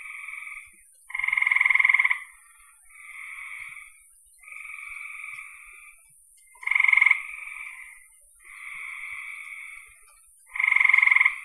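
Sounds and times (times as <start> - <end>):
frogs trilling: 0.0 - 11.4.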